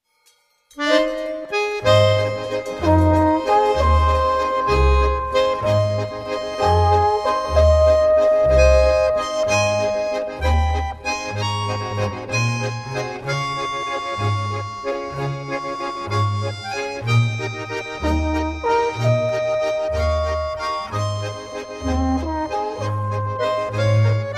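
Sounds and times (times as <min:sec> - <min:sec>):
alphorn: 0:00.8 - 0:24.3.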